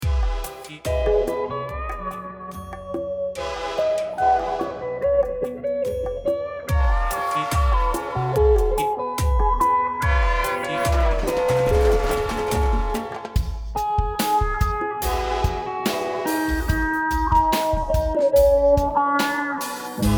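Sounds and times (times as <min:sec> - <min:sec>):
slow funk music: 0:00.0 - 0:20.1.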